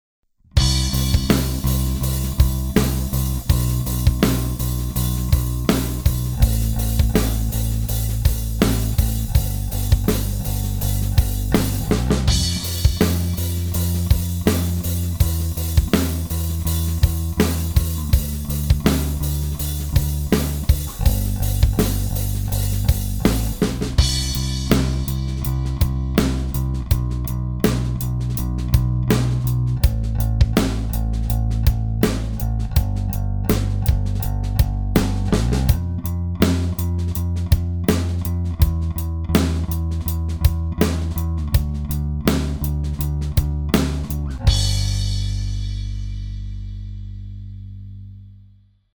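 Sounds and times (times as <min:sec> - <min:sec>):
drum: 0:00.6 - 0:46.7.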